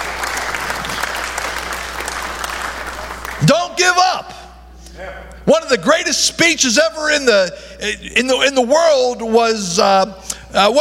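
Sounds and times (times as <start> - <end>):
audience applauding and cheering: 0.0 - 3.8
speech: 3.4 - 4.4, 5.0 - 10.8.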